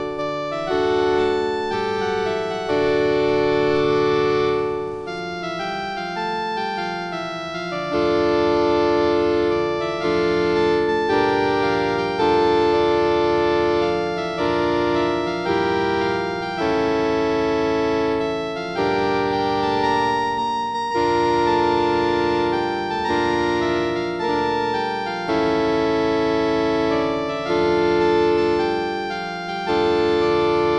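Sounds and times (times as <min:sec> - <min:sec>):
instrumental anthem: 0:00.0 - 0:30.7.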